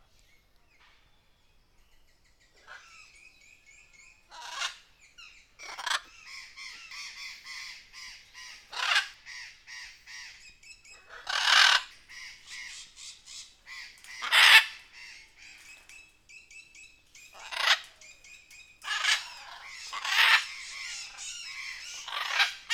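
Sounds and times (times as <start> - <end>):
jungle birds giving harsh squawking calls: 4.2 - 15.9, 17.2 - 22.7.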